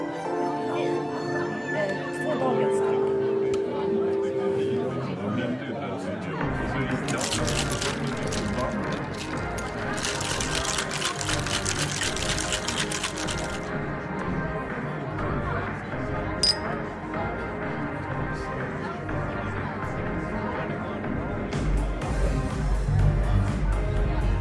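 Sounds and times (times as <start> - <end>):
overlapping voices murmuring in a bar: 0.0 - 24.3
sharp clink: 16.4 - 16.7.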